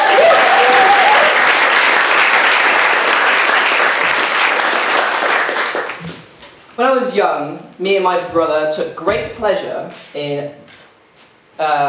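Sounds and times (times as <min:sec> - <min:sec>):
audience applause: 0:00.0 - 0:06.0
speech: 0:07.0 - 0:10.8, 0:11.6 - 0:11.8.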